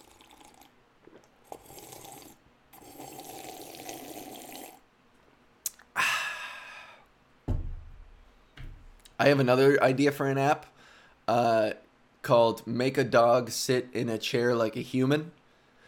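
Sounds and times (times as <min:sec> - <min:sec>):
taking a sip of Tucci: 0:00.0 - 0:04.9
speech: 0:09.2 - 0:10.7, 0:11.3 - 0:15.4.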